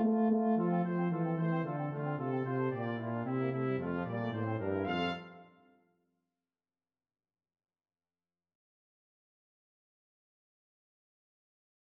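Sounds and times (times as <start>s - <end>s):
brass quintet playing: 0.0s - 5.5s.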